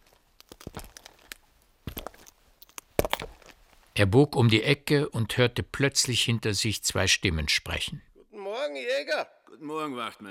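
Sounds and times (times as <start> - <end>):
footsteps walking: 0.0 - 3.9
speech: 4.0 - 10.2.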